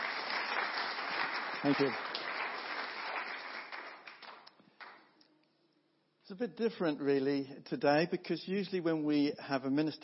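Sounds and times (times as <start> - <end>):
audience clapping to greet a speaker: 0.0 - 5.2
speech: 1.6 - 2.1, 6.3 - 10.0.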